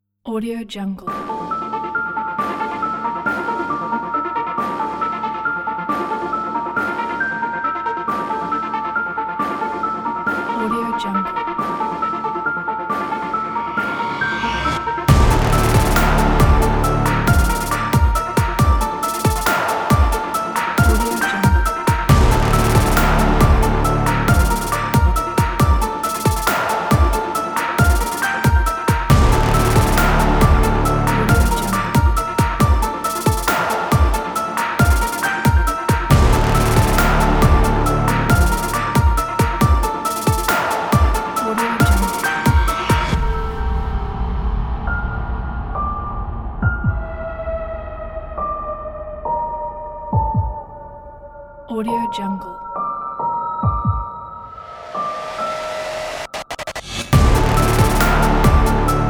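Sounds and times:
suspenseful music: 1.0 - 59.0.

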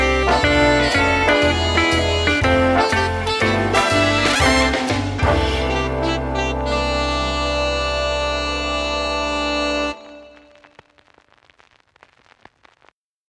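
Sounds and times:
big band music logo: 0.0 - 10.6.

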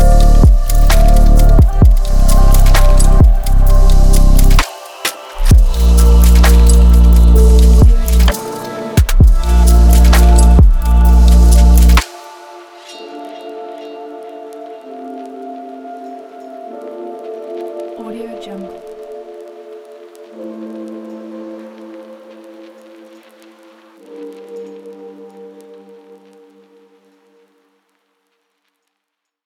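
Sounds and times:
future garage music: 0.0 - 12.1.

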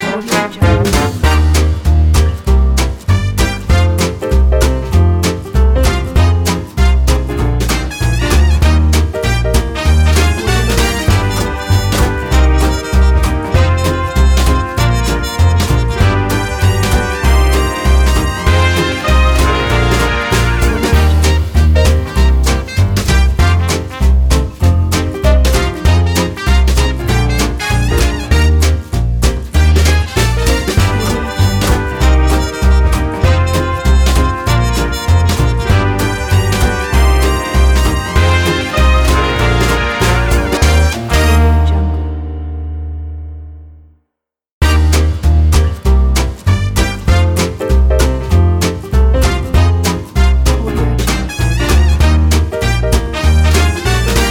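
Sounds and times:
brass swing music: 0.0 - 43.6, 44.6 - 54.2.

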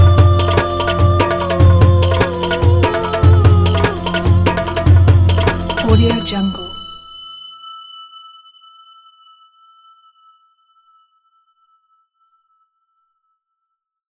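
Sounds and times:
belly dance music: 0.0 - 7.1.

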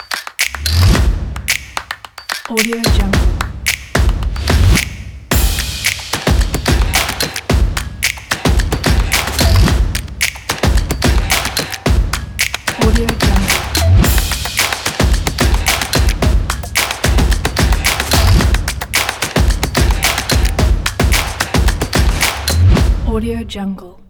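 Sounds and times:
drums: 0.3 - 23.2.

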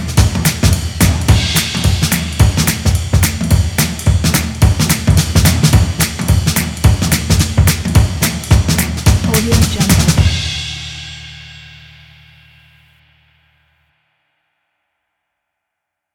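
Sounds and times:
jazz drums: 0.0 - 11.2.

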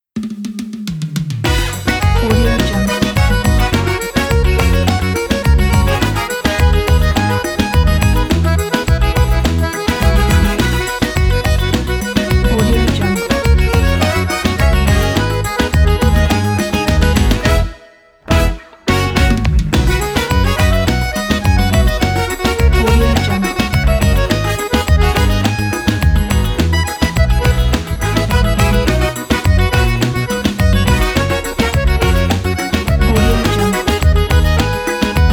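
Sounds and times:
forrobodo music: 1.4 - 35.3.

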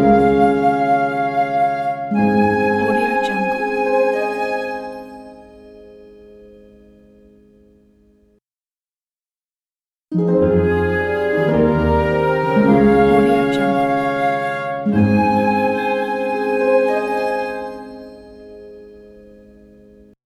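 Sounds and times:
romantic cinematic fairytale music: 0.0 - 6.2, 10.2 - 19.5.

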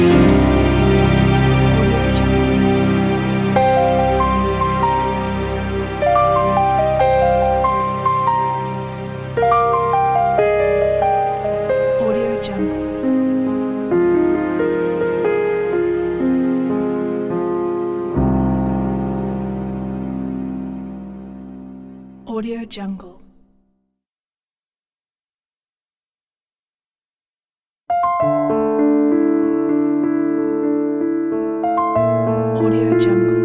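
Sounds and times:
orchestra: 0.0 - 10.0
beautiful piano: 0.0 - 23.6, 27.9 - 33.4.

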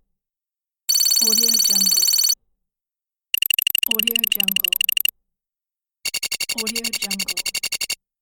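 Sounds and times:
loopable score counter sound: 0.9 - 2.3, 3.3 - 5.1, 6.1 - 8.0.

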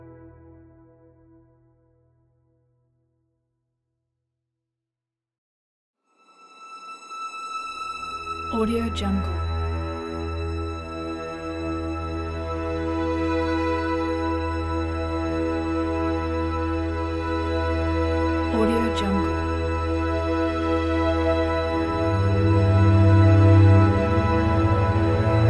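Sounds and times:
dark fantasy ambience: 7.0 - 25.4.

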